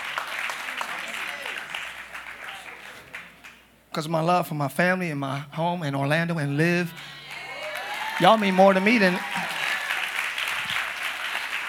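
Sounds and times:
crowd clapping: 0.0 - 3.7, 6.9 - 11.6
speech: 4.0 - 7.1, 8.2 - 9.4.

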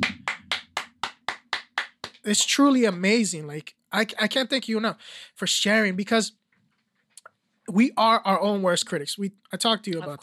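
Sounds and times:
applause: 0.0 - 2.3
speech: 2.2 - 6.4, 7.7 - 10.2.

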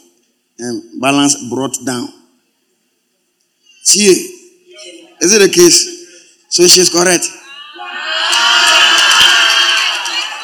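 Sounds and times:
speech: 0.6 - 2.2, 3.9 - 8.0
room full of people applauding: 7.8 - 10.4.

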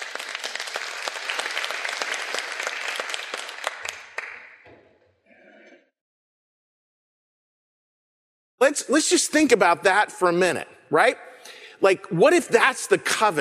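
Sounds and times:
audience applause: 0.0 - 4.6
speech: 8.6 - 13.3.

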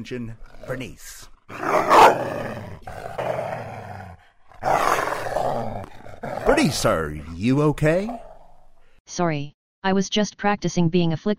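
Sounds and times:
speech: 0.0 - 3.1, 6.6 - 8.2, 9.1 - 11.3
voice imitating a snarling hell dog: 0.4 - 8.6.

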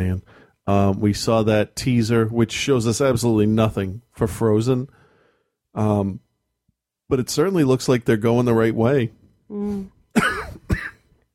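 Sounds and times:
speech: 0.0 - 5.0, 5.8 - 6.2, 7.1 - 10.8
person with allergies coughing: 10.2 - 11.0.

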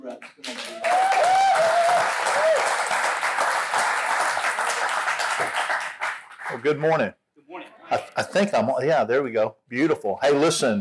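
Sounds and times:
church congregation applauding a guest speaker at a Sunday morning service: 0.0 - 6.9
speech: 6.6 - 7.2, 7.9 - 10.8.

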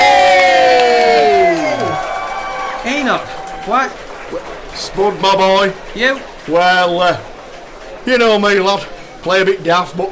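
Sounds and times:
crowd cheering: 0.0 - 10.0
speech: 3.6 - 7.3, 8.0 - 10.0.

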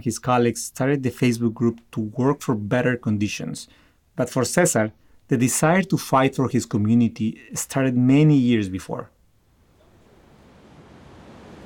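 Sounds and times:
speech: 0.0 - 9.2
low rumble: 9.5 - 11.6
rain falling in the city: 9.6 - 11.6.

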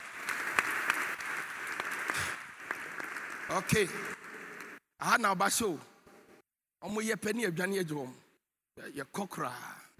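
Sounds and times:
crowd audience applause: 0.0 - 4.8
speech: 3.5 - 4.2, 5.0 - 5.9, 6.8 - 8.2, 8.8 - 9.7.

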